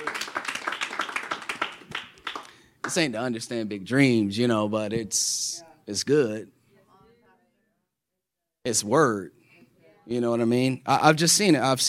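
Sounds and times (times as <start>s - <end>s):
crowd clapping: 0.0s - 3.2s
speech: 2.9s - 6.6s, 8.7s - 9.4s, 10.1s - 11.8s.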